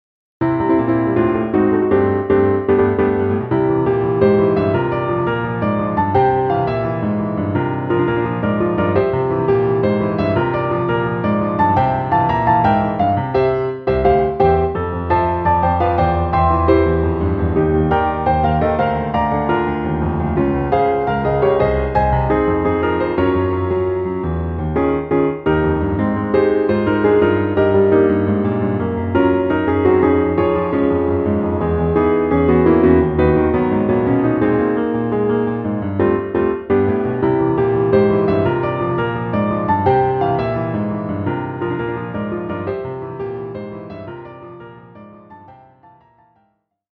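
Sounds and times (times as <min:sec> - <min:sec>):
piano: 0:00.4 - 0:46.9.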